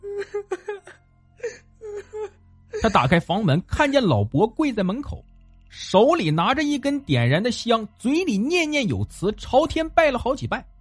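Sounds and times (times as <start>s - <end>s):
woman wailing and sobbing: 0.0s - 3.2s
speech: 2.8s - 5.3s, 5.9s - 10.7s.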